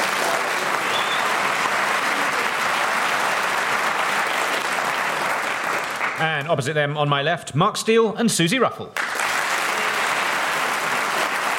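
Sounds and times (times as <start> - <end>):
panel show studio audience applause: 0.0 - 6.4, 9.0 - 11.5
speech: 6.2 - 9.0.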